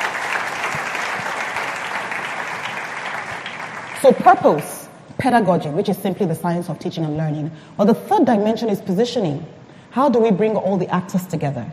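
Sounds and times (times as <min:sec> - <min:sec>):
audience applause: 0:00.0 - 0:04.2
speech: 0:04.0 - 0:11.7.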